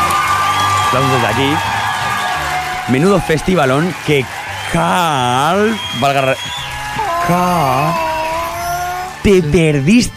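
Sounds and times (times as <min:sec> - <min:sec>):
crowd applause: 0:00.0 - 0:10.1
speech: 0:00.9 - 0:01.7, 0:02.9 - 0:06.6, 0:07.2 - 0:08.0, 0:09.2 - 0:10.1
person whooping: 0:06.8 - 0:09.2.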